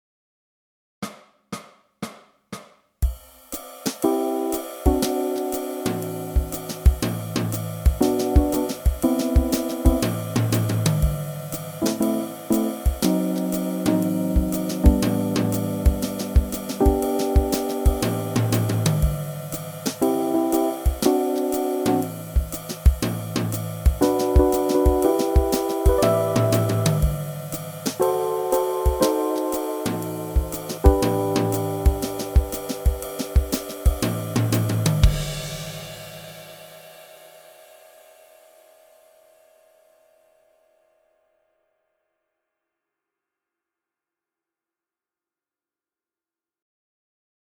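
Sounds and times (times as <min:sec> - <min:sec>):
backing track: 0:04.1 - 0:35.6.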